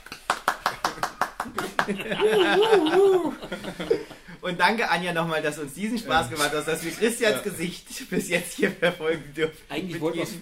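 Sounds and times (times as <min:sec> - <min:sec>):
hand claps: 0:00.0 - 0:02.1
laughter: 0:00.7 - 0:04.4
speech: 0:01.9 - 0:10.4.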